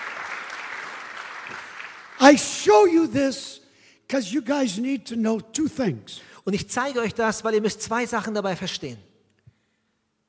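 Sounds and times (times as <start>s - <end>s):
congregation clapping in praise during a church sermon: 0.0s - 3.2s
speech: 2.2s - 9.1s.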